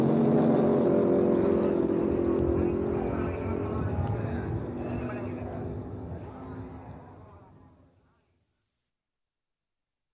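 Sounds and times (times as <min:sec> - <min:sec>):
AA Klasse roadster in Sport mode: 0:00.0 - 0:07.4.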